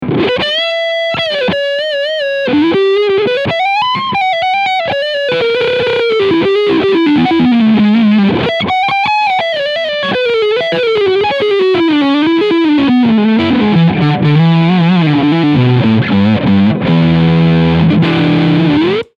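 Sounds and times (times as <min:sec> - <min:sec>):
overdriven guitar on front pickup: 0:00.0 - 0:19.1.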